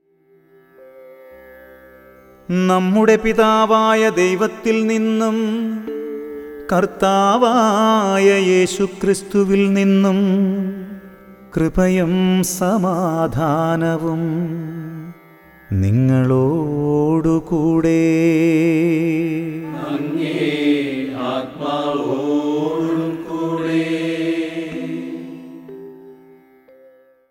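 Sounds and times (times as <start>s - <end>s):
raga melody: 2.3s - 17.2s, 18.5s - 27.1s.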